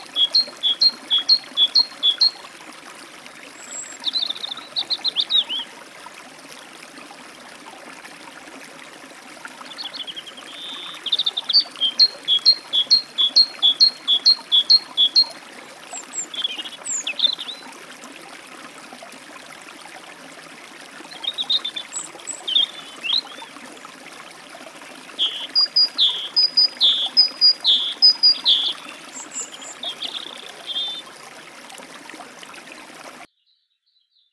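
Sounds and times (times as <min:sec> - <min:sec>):
great tit at a forest stream: 0:00.0 - 0:02.5, 0:09.8 - 0:15.4, 0:21.2 - 0:23.4, 0:25.2 - 0:31.2
European robin at a forest stream: 0:00.0 - 0:02.6, 0:03.6 - 0:05.8, 0:09.7 - 0:17.7, 0:21.1 - 0:23.6, 0:25.1 - 0:31.4
forest stream flowing: 0:00.0 - 0:33.3.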